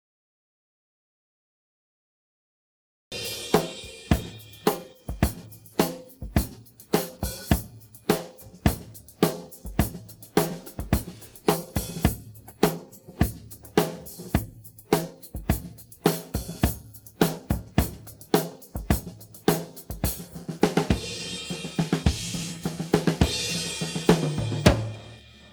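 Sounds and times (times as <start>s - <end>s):
drum pattern: 3.1s - 25.5s.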